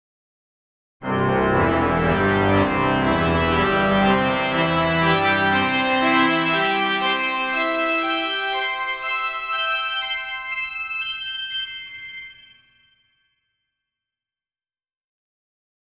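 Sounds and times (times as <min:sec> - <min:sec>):
organ: 0:01.0 - 0:12.4.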